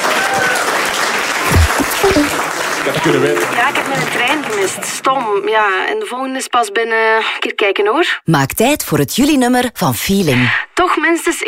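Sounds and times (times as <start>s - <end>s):
audience applause: 0.0s - 5.1s
speech: 3.0s - 11.4s.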